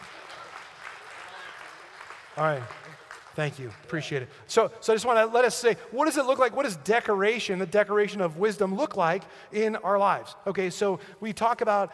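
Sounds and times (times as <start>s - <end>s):
audience applause: 0.0s - 4.2s
speech: 2.4s - 11.9s.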